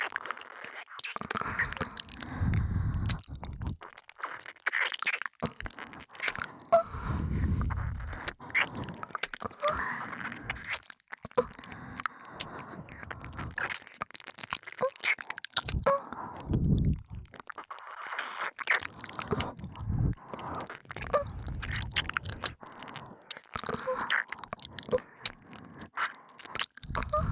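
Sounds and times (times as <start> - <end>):
ear licking in both ears: 0.0 - 27.2
breathing sounds in both ears: 1.2 - 3.7, 5.7 - 10.8, 11.4 - 13.7, 15.6 - 17.2, 19.1 - 27.2.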